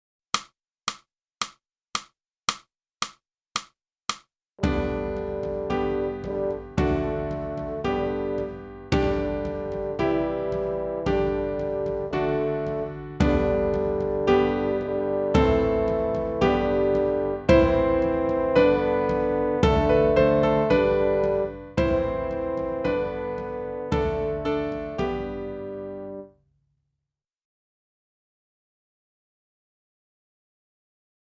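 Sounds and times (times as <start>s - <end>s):
clarinet: 4.6s - 26.3s.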